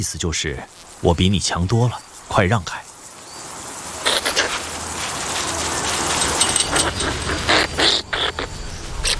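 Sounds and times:
speech: 0.0s - 2.9s
European ground squirrel aggressive call: 3.8s - 9.1s.

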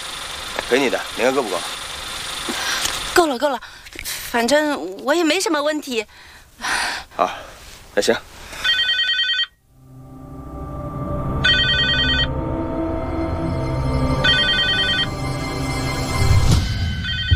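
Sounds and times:
speech: 0.7s - 1.8s, 3.2s - 8.3s
mobile phone ringing: 8.6s - 9.6s, 11.4s - 12.4s, 14.2s - 15.2s, 16.8s - 17.3s
steady low rumble: 9.7s - 17.3s.

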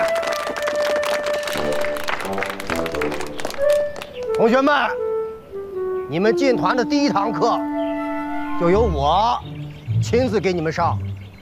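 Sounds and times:
applause: 0.0s - 4.4s
speech: 4.4s - 5.0s, 6.1s - 7.8s, 8.6s - 11.1s.

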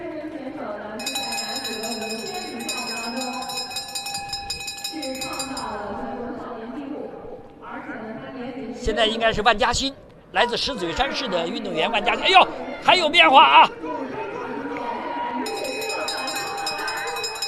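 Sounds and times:
bell ringing for the final lap: 1.0s - 5.9s, 15.5s - 17.4s
excited commentator speaking: 8.8s - 13.8s
speech: 8.8s - 13.9s.

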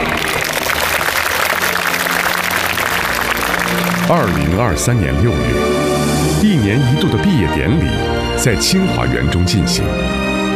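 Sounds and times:
audience applause at graduation ceremony: 0.0s - 5.5s
speech: 4.1s - 10.3s.

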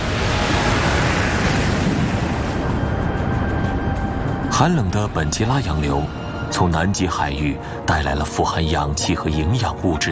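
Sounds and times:
Atlantic ocean waves crashing on steep cliffs and wide beach: 0.0s - 6.6s
speech: 4.6s - 10.1s.

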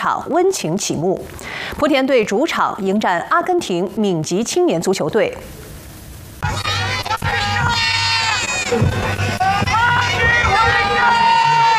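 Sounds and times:
speech: 0.0s - 5.7s, 8.7s - 8.9s
stadium crowd cheering welcome home at a football friendly in Putian: 6.4s - 11.7s.

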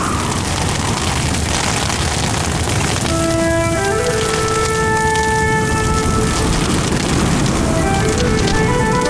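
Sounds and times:
rain falling on the ground: 0.0s - 9.0s.

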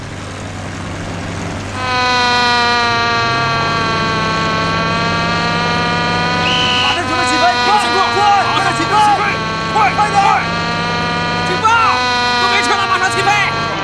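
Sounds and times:
alarm siren: 0.0s - 13.8s.

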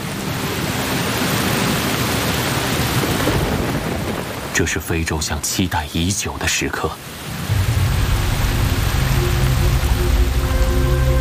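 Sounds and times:
heavy downpour of rain: 0.0s - 11.1s
speech: 4.6s - 7.2s.

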